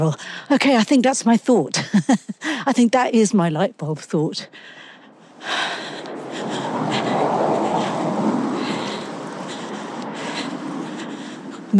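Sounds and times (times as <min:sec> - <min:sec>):
speech: 0:00.0 - 0:04.8
passing car traffic: 0:04.4 - 0:11.7.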